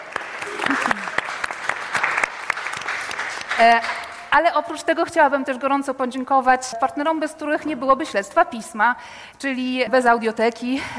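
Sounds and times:
audience applause: 0:00.0 - 0:04.3
speech: 0:03.6 - 0:10.9.

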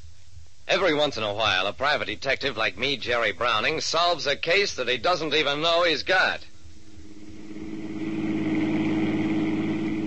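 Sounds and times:
speech: 0:00.7 - 0:06.5
car driving: 0:06.7 - 0:10.0.

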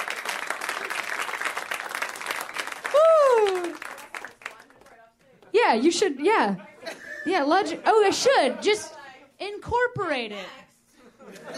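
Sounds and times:
clapping: 0:00.0 - 0:05.5
person whooping: 0:02.8 - 0:03.9
speech: 0:05.7 - 0:08.9, 0:10.0 - 0:10.6
laughter: 0:06.0 - 0:09.2, 0:10.9 - 0:11.5.

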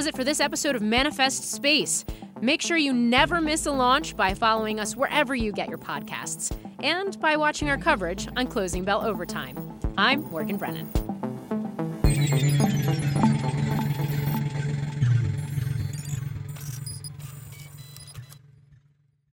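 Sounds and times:
speech: 0:00.0 - 0:13.7
car engine of about 500 horsepower: 0:13.4 - 0:17.7.

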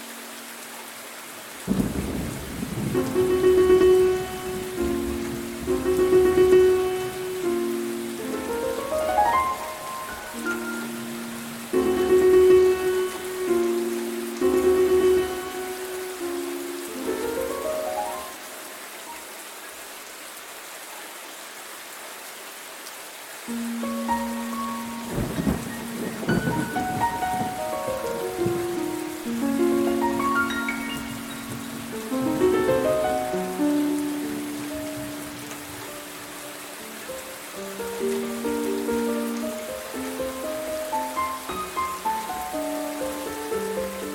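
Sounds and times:
gentle music: 0:00.0 - 0:19.8, 0:23.4 - 0:44.1
thunderstorm: 0:01.6 - 0:07.2, 0:25.0 - 0:28.8.

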